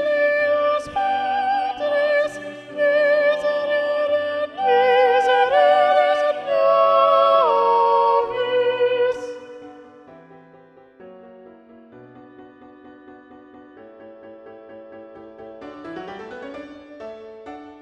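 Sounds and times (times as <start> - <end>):
soprano singing a mass: 0.0 - 9.9.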